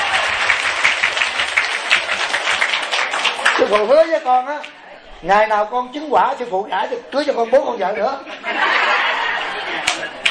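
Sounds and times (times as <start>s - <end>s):
audience applause at a Buddhist monk's talk: 0.0s - 4.7s, 8.8s - 10.2s
speech: 3.6s - 9.1s
laughter: 6.4s - 10.2s.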